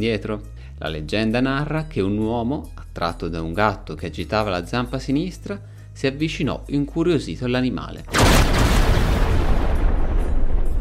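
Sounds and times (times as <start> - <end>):
speech: 0.0 - 8.6
lightning strike thunderclap: 8.2 - 10.7.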